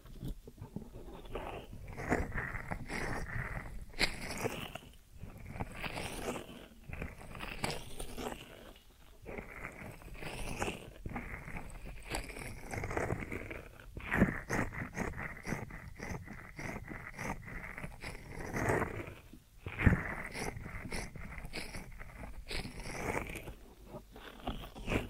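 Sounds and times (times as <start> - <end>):
deep ear massage rubbing, scraping and crackles: 0.0 - 25.0.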